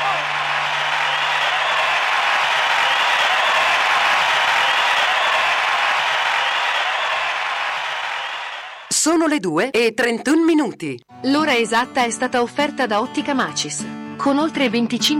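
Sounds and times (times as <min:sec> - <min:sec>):
applause: 0:00.0 - 0:09.0
speech: 0:09.0 - 0:15.1.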